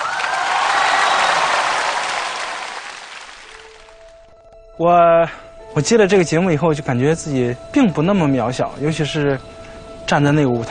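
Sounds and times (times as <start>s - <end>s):
audience applause: 0.0s - 4.0s
speech: 4.8s - 10.6s.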